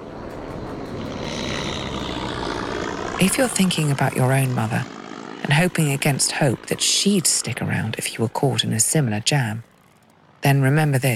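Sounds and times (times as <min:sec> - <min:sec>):
airplane flying away: 0:00.0 - 0:11.1
speech: 0:03.2 - 0:09.7, 0:10.4 - 0:11.1.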